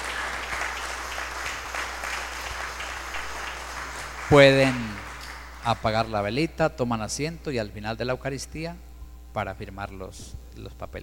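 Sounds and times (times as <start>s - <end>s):
audience applause after baptism: 0.0s - 5.9s
speech: 4.3s - 5.0s, 5.6s - 11.0s.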